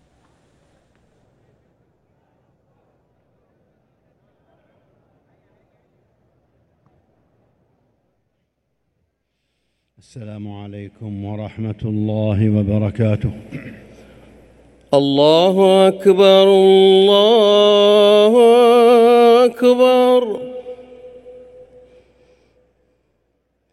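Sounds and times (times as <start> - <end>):
second Friday call to prayer: 10.0 - 22.6.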